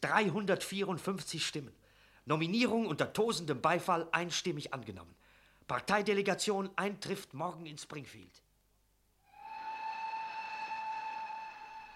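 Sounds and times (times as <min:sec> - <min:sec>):
speech: 0:00.0 - 0:08.4
steam train whistle blowing: 0:09.2 - 0:11.9.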